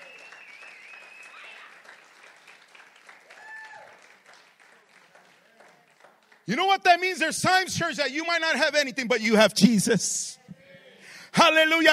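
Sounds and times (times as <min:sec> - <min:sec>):
church audience clapping: 0:00.0 - 0:07.2
speech: 0:06.5 - 0:10.4, 0:11.4 - 0:11.9.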